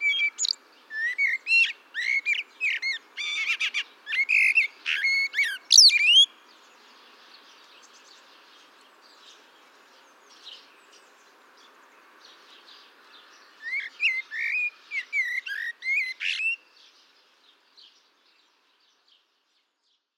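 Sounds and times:
common blackbird song: 0.0s - 20.1s.

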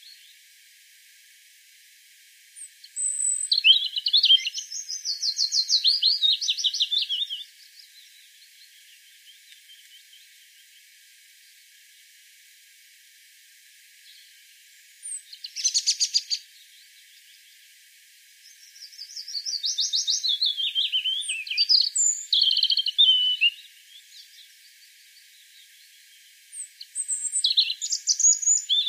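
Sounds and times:
European robin song: 2.6s - 10.6s, 15.0s - 17.4s, 18.4s - 28.8s.

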